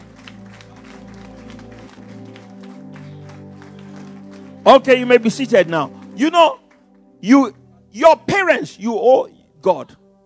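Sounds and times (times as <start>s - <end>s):
audience standing applause: 0.0s - 6.8s
sustained organ or keyboard chords: 0.0s - 10.2s
speech: 4.7s - 6.6s, 7.2s - 10.0s.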